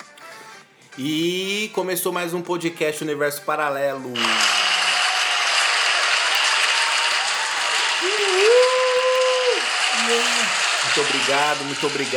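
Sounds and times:
speech: 1.0 - 4.6, 11.0 - 12.1
audience applause: 4.2 - 12.1.

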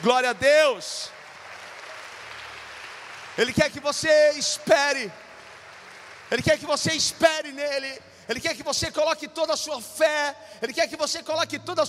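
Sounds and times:
speech: 0.0 - 1.2, 3.4 - 5.2, 6.3 - 11.8
audience applauding: 0.0 - 7.6.

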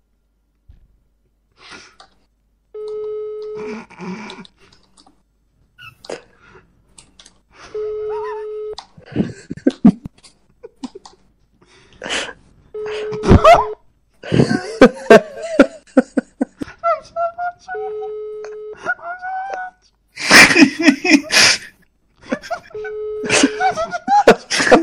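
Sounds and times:
ringback tone of an outgoing phone call: 2.8 - 3.8, 7.6 - 8.8, 12.8 - 13.8, 17.8 - 19.0, 22.7 - 23.8
laughter: 9.0 - 11.2, 13.0 - 17.8, 18.4 - 24.8.

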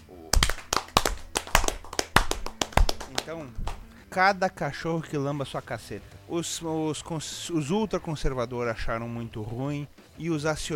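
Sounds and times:
round of applause: 0.3 - 3.8
speech: 3.3 - 10.7.

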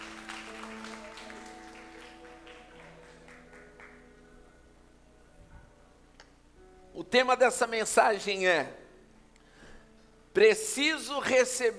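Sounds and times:
audience applauding: 0.0 - 4.1
speech: 7.1 - 8.8, 10.4 - 11.7.

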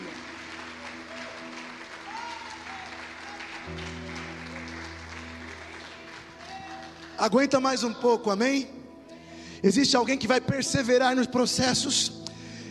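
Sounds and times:
audience applauding: 0.0 - 7.6
speech: 7.2 - 8.8, 9.6 - 12.2.

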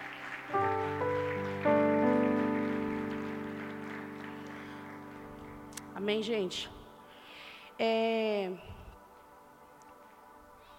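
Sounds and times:
audience applauding: 0.0 - 5.9
speech: 6.0 - 6.8, 7.8 - 8.8.

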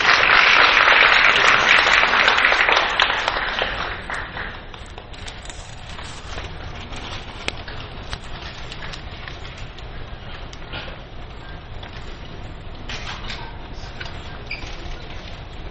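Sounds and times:
audience applause: 0.0 - 5.0.

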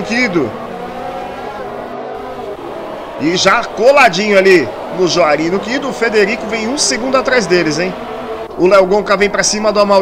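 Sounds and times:
speech: 0.0 - 0.6, 3.2 - 9.9
McLaren race car engine roaring during a motor race: 0.0 - 9.9.

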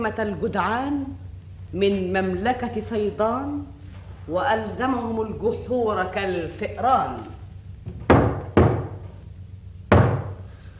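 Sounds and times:
speech: 0.0 - 7.4
low steady hum: 0.0 - 10.7
heavy knocks on a wooden door: 7.8 - 9.0, 9.9 - 10.4.

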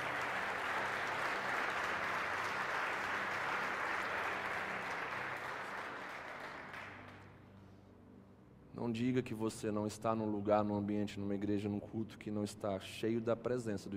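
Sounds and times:
audience applause: 0.0 - 7.2
speech: 8.8 - 13.9.

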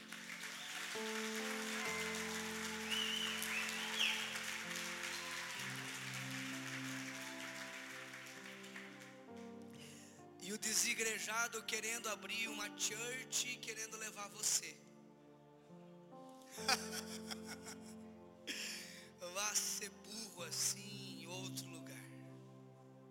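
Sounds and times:
audience applause: 0.0 - 10.0
sustained keyboard chords: 0.0 - 23.0
laughter: 0.5 - 8.6, 16.5 - 18.9
speech: 10.6 - 14.9.

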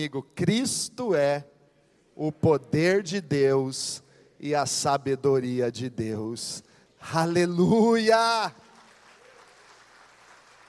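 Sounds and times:
speech: 0.0 - 1.5, 2.2 - 8.6
audience applause: 8.6 - 10.6.

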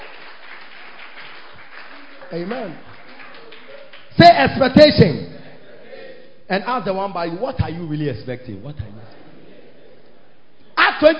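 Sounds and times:
audience clapping: 0.0 - 4.8
speech: 2.3 - 3.0, 4.2 - 5.3, 6.5 - 9.2, 11.0 - 11.1.

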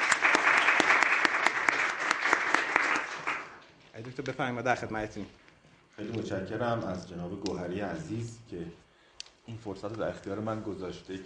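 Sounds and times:
audience applause for a doctor introduced as a speaker: 0.0 - 3.6
speech: 4.0 - 5.4, 6.0 - 8.8, 9.5 - 11.2.

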